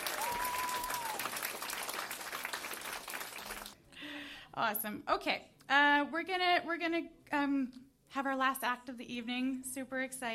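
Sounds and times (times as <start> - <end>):
audience applause: 0.0 - 3.8
speech: 4.6 - 10.3.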